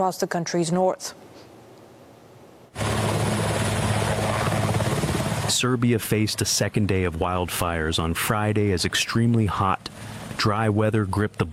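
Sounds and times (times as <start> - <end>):
speech: 0.0 - 1.5, 5.6 - 11.5
firefighting helicopter flying: 2.7 - 11.5.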